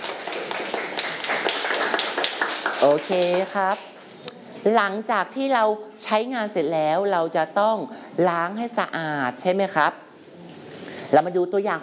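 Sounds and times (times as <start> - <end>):
students in a classroom applauding a classmate: 0.0 - 3.6
speech: 2.8 - 3.9, 4.6 - 10.0, 11.1 - 11.8.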